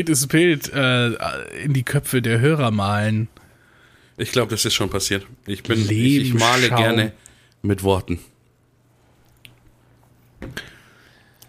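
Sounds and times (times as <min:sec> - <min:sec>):
speech: 0:00.0 - 0:03.4, 0:04.2 - 0:08.3
slurping sip of coffee: 0:05.8 - 0:06.8.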